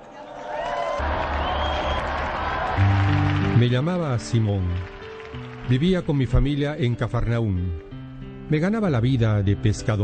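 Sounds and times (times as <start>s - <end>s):
audience applause: 0.4s - 6.6s
speech: 3.6s - 7.8s, 8.5s - 10.0s.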